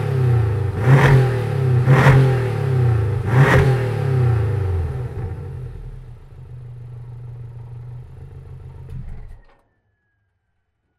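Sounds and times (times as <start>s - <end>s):
Porsche 718 exhaust revving with valve open and closed: 0.0s - 8.7s.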